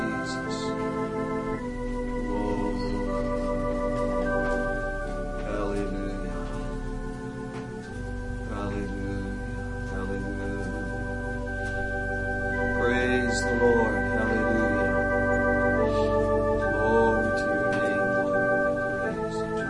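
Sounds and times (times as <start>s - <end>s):
worship organ prelude: 0.0s - 19.6s.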